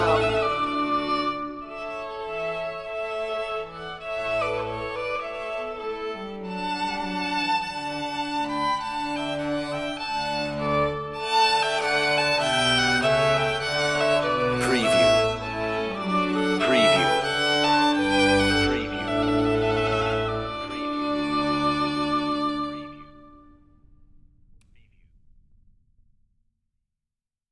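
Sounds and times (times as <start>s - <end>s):
trumpet tune: 0.0s - 1.4s, 11.8s - 21.1s
violin: 0.0s - 24.8s.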